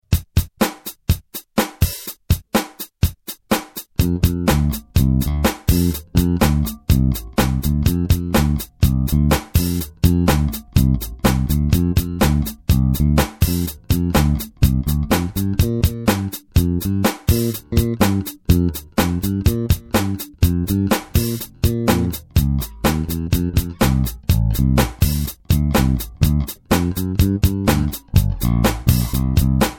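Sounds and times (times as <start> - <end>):
instrumental music: 0.0 - 29.7.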